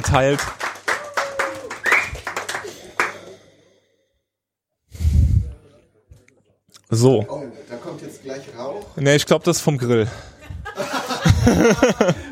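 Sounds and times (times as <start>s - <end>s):
small group clapping for a woman serving wine at a tasting: 0.0s - 3.4s
speech: 0.1s - 0.6s, 6.9s - 10.3s, 11.4s - 12.3s
laughter: 10.1s - 12.3s.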